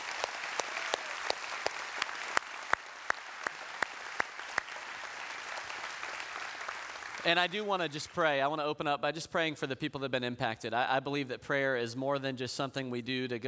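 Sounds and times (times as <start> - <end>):
audience round of applause: 0.0 - 8.3
speech: 7.2 - 13.4.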